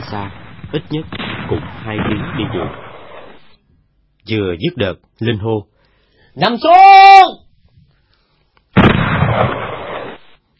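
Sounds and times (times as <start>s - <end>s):
bomb explosion in the jungle: 0.0s - 3.5s, 8.8s - 10.3s
speech: 0.1s - 2.8s, 4.2s - 5.7s, 6.4s - 7.4s.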